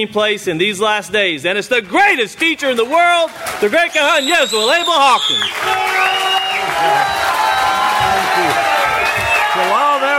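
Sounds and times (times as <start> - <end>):
speech: 0.0 - 6.1, 6.8 - 7.2
large crowd cheering and applauding: 3.3 - 10.1
bright whistles and whoops: 4.1 - 9.8.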